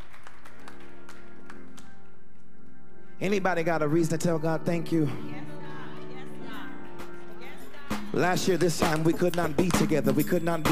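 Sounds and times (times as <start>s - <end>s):
crowd audience clapping hands: 0.0s - 2.0s, 7.9s - 10.6s
speech: 3.2s - 5.4s, 8.2s - 10.6s.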